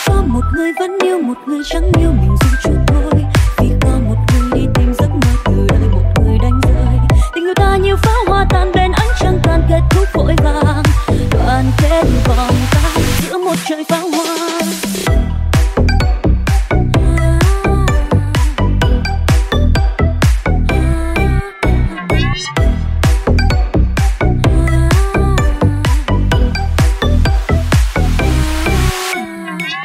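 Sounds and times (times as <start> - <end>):
remix ringtone: 0.1 - 29.8.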